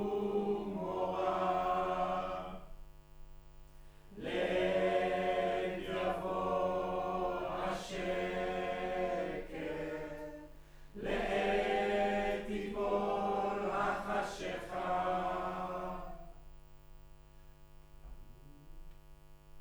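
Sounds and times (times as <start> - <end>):
choir singing: 0.0 - 2.8, 4.1 - 16.4.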